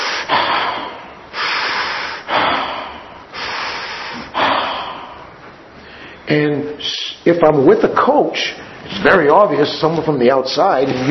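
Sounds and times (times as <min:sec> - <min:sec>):
person exhaling held breath: 0:00.0 - 0:06.3
speech: 0:06.3 - 0:11.0.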